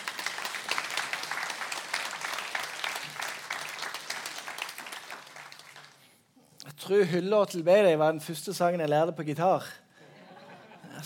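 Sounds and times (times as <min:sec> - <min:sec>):
audience applause: 0:00.0 - 0:06.1
speech: 0:06.9 - 0:09.8
laughter: 0:10.0 - 0:11.0.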